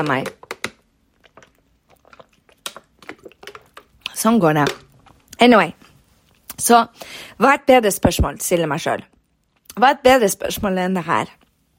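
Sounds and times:
speech: 0.0 - 0.4, 4.2 - 4.8, 5.4 - 5.8, 6.6 - 9.1, 9.8 - 11.4
person drinking water: 1.0 - 4.2.

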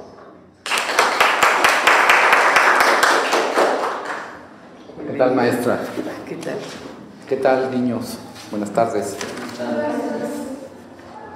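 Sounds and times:
children applauding: 0.6 - 4.4
speech: 5.2 - 9.8.

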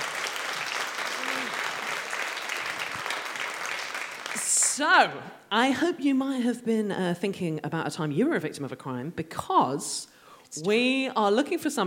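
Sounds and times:
theatre audience clapping: 0.0 - 4.8
person cheering: 1.0 - 2.0
speech: 4.8 - 11.8.

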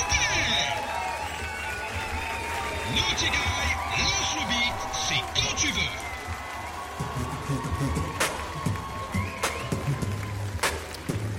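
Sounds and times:
voices calling out: 0.0 - 6.8
audience clapping and cheering: 0.0 - 11.3
speech: 2.9 - 6.1.

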